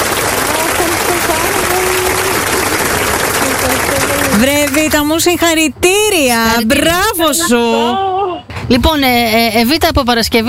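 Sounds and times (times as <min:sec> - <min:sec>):
crowd applause: 0:00.0 - 0:05.0
speech: 0:04.4 - 0:10.4.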